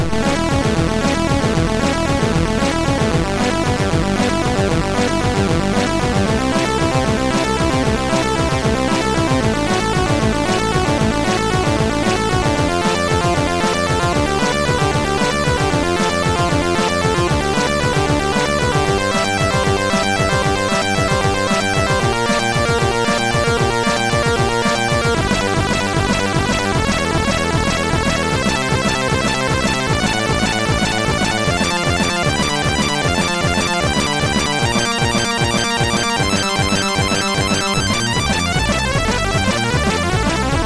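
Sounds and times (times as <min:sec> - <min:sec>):
MOS6581R2 SID chip synth: 0:00.0 - 0:40.6.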